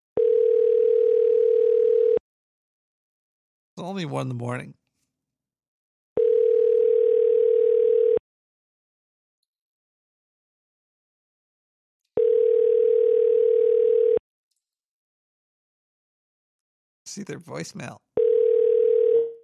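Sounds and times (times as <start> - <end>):
telephone ringback tone while placing a call: 0.2 - 2.2, 6.2 - 8.2, 12.2 - 14.2, 18.2 - 19.4
speech: 3.8 - 4.8, 17.2 - 18.1.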